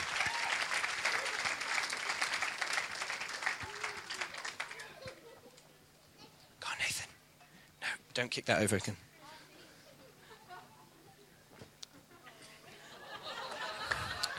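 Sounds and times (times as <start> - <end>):
audience clapping: 0.0 - 5.2, 13.4 - 14.3
laughter: 3.6 - 6.4, 9.8 - 11.1, 11.9 - 14.3
speech: 8.2 - 9.1.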